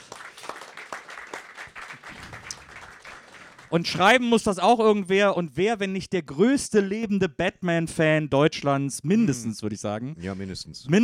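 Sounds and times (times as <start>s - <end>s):
audience applause: 0.0s - 4.0s
speech: 3.7s - 11.0s.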